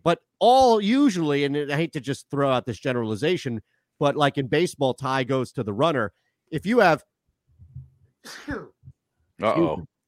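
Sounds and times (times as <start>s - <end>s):
speech: 0.0s - 7.1s, 8.2s - 8.8s, 9.4s - 9.9s
person sneezing: 8.2s - 8.8s.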